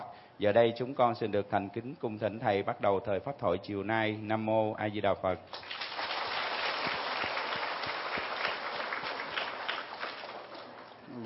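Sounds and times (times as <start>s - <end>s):
speech: 0.4s - 5.8s
crowd clapping at a Buddhist Dharma talk during a day-long retreat: 5.5s - 11.1s.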